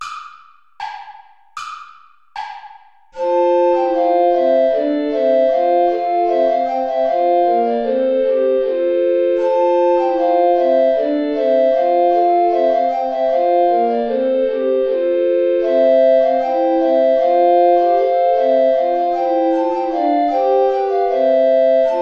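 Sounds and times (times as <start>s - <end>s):
play-along backing music: 3.2s - 22.0s.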